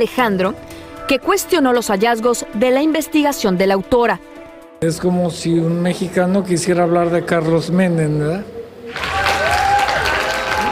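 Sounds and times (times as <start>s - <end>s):
speech: 0.0s - 9.1s
audience ovation applause: 8.9s - 10.6s.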